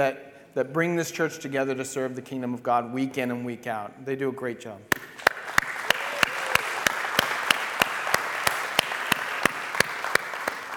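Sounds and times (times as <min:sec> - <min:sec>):
speech: 0:00.0 - 0:05.0
clapping: 0:04.9 - 0:10.7.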